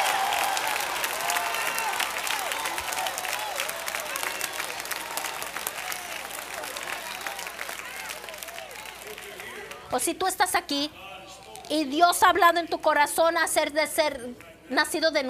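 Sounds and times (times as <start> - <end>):
crowd clapping: 0.0 - 9.9
speech: 9.9 - 11.1, 11.7 - 15.2.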